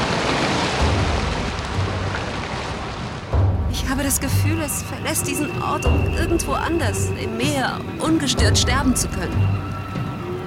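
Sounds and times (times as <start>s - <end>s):
huge body plunging into harbour water: 0.0s - 3.7s
speech: 4.0s - 9.8s.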